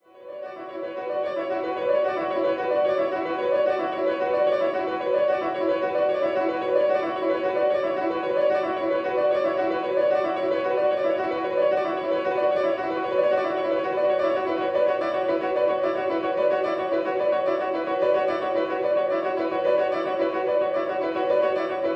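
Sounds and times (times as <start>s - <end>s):
piano music: 0.2s - 21.9s.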